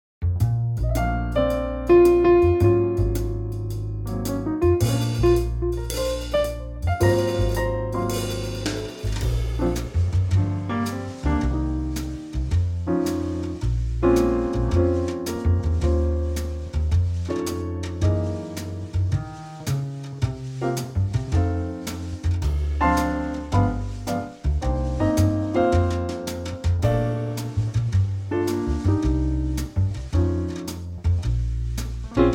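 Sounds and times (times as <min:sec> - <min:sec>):
jazz music in B flat: 0:00.2 - 0:32.3.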